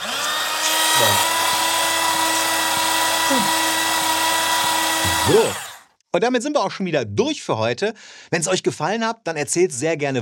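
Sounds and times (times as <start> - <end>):
paper shredder running: 0.0 - 5.8
speech: 3.3 - 3.6, 5.3 - 10.2.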